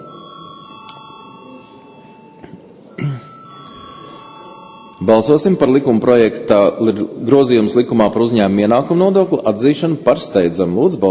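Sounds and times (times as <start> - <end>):
parliament chamber bell ringing: 0.0 - 6.0
speech: 5.0 - 11.0.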